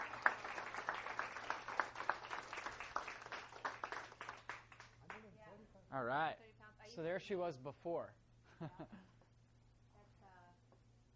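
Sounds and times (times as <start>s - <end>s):
audience applause: 0.0s - 5.2s
speech: 6.0s - 9.2s.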